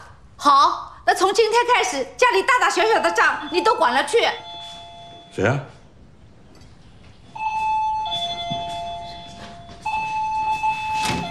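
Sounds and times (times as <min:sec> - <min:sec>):
faint noise: 0:00.0 - 0:11.2
speech: 0:00.4 - 0:04.5, 0:05.4 - 0:05.7
electronic doorbell two-tone chimes: 0:02.9 - 0:05.6, 0:07.4 - 0:11.2.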